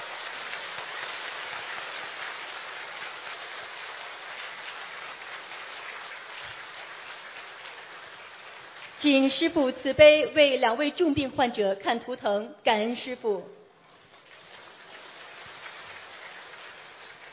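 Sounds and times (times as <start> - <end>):
large crowd applauding warmly: 0.0 - 9.0, 14.1 - 17.3
speech: 9.0 - 13.6.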